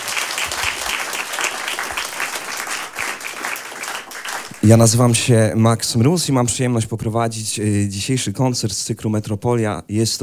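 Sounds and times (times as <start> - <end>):
studio audience applause: 0.0 - 5.4
speech: 4.6 - 10.2.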